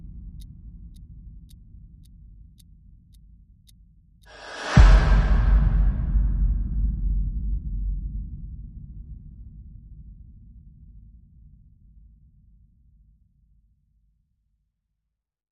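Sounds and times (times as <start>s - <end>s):
percussion: 4.3s - 8.8s.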